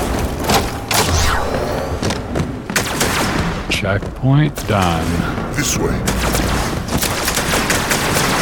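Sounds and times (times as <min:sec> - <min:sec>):
video game gunfire from a big gun: 0:00.0 - 0:03.8, 0:06.0 - 0:08.4
speech: 0:03.8 - 0:06.5.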